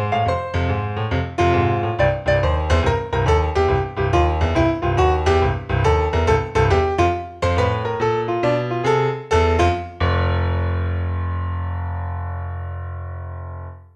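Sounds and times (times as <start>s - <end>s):
solo piano: 0.0s - 13.9s.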